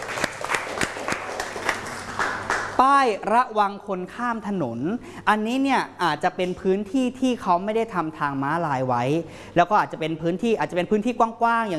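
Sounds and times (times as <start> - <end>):
children clapping for themselves in a lesson: 0.0 - 2.8
speech: 2.8 - 11.7.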